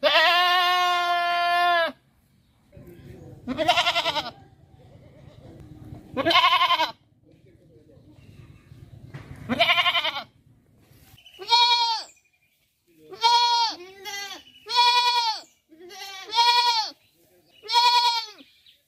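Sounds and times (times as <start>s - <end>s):
happy goat bleating: 0.0s - 2.0s, 3.4s - 4.4s, 6.2s - 7.0s, 9.5s - 10.4s, 11.4s - 12.1s, 13.1s - 17.0s, 17.6s - 18.5s.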